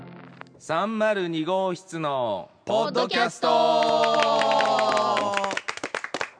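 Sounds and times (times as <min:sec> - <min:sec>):
speech: 0:00.7 - 0:05.4
applause: 0:03.5 - 0:06.3.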